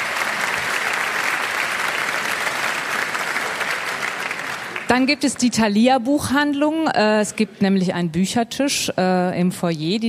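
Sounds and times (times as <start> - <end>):
audience clapping: 0.0 - 5.5
speech: 4.9 - 10.0.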